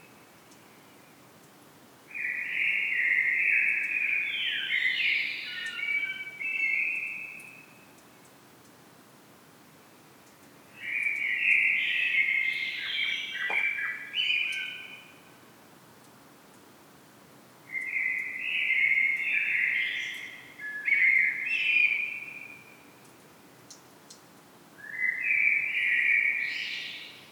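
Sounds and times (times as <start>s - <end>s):
common blackbird singing: 2.2s - 7.6s, 10.8s - 15.1s, 17.7s - 22.7s, 24.8s - 27.3s.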